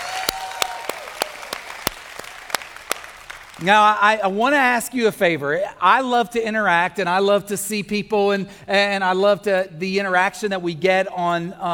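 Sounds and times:
audience clapping hands: 0.0s - 4.0s
speech: 3.6s - 11.7s.

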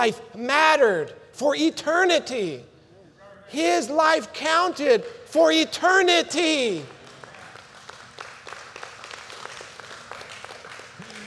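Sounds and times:
speech: 0.0s - 2.7s, 3.5s - 7.0s
weak tepid audience clapping: 6.8s - 11.2s.

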